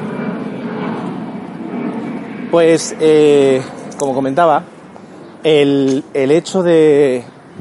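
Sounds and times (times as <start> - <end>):
airplane flying overhead: 0.0 - 7.6
speech: 2.5 - 4.7, 5.4 - 7.3.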